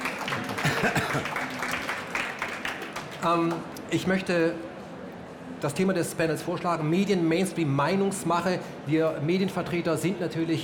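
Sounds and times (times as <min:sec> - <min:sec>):
audience clapping: 0:00.0 - 0:03.8
speech: 0:00.8 - 0:01.4, 0:03.2 - 0:04.7, 0:05.6 - 0:10.6.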